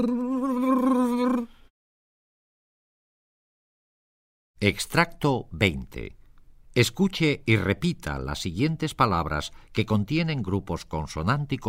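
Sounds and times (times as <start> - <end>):
speech: 0.0 - 0.9, 4.6 - 6.2, 6.8 - 11.6
voice imitating someone shivering with cold with a rolled brrr: 0.0 - 1.6.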